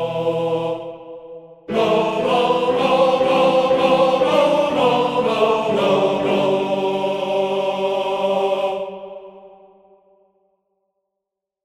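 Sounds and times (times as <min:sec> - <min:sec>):
tenor male choir singing: 0:00.0 - 0:09.9.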